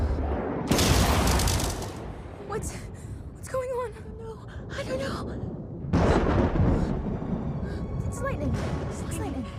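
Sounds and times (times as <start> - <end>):
thunder booms from lightning: 0.2 - 2.6, 5.4 - 7.9
speech: 2.6 - 2.9, 8.4 - 9.5.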